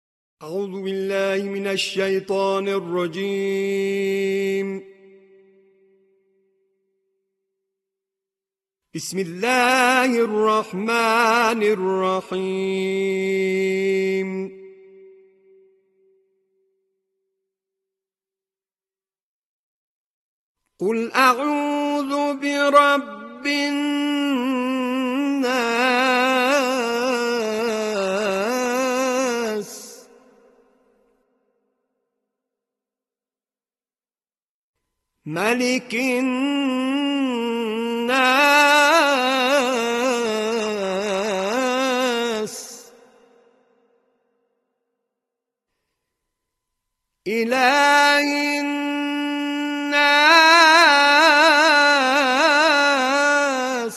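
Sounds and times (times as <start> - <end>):
Quran recitation: 0.4 - 6.0, 8.9 - 15.8, 20.7 - 30.6, 35.2 - 43.6, 47.3 - 53.9.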